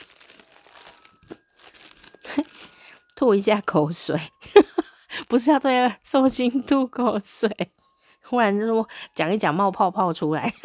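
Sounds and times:
plastic bag being opened, crinkling: 0.0 - 3.7
speech: 3.2 - 4.4, 5.3 - 10.6.

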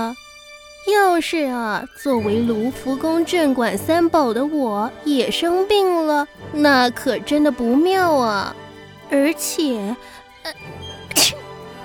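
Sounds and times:
speech: 0.0 - 11.4
sneeze: 11.1 - 11.5.

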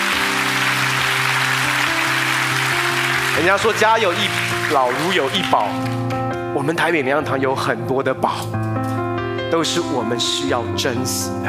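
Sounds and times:
applause: 0.0 - 6.2
speech: 3.4 - 8.9, 9.5 - 11.4.

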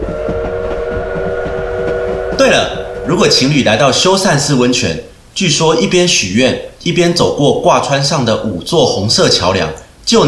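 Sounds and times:
steam train whistle: 0.0 - 4.0
steam locomotive chugging: 0.0 - 4.3
speech: 2.4 - 10.2.

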